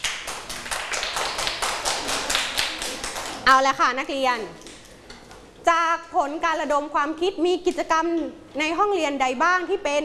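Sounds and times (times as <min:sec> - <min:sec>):
classroom clapping: 0:00.0 - 0:03.5
speech: 0:03.5 - 0:04.6, 0:05.6 - 0:10.0.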